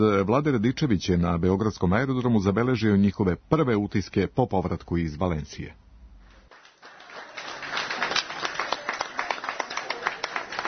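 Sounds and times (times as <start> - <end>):
speech: 0.0 - 5.8
applause for the women's basketball champions at Belgrade Nikola Tesla airport: 6.4 - 10.6.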